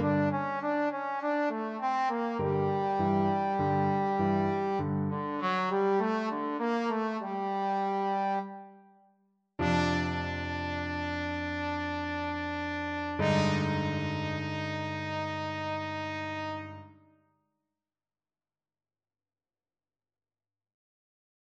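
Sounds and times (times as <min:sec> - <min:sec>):
trombone playing boogie: 0:00.0 - 0:07.6, 0:09.6 - 0:16.8.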